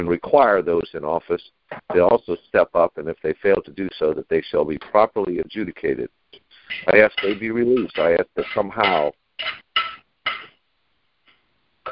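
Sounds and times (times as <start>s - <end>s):
speech: 0.0s - 9.9s
dishes clattering while being washed: 6.6s - 10.6s.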